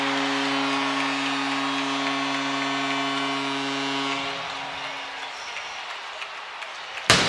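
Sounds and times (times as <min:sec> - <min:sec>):
low horn tone: 0:00.0 - 0:05.0
arena crowd roaring: 0:00.0 - 0:07.2.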